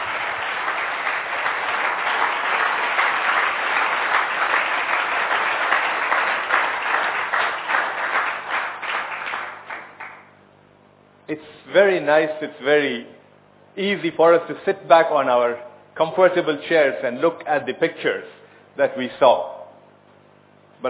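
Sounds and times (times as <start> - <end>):
audience applause for missionaries: 0.0 - 10.2
speech: 11.8 - 13.2, 13.8 - 19.5.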